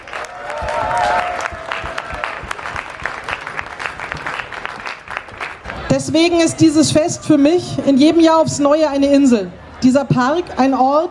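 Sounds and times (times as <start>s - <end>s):
crowd applauding: 0.0s - 6.0s
speech: 6.0s - 11.0s.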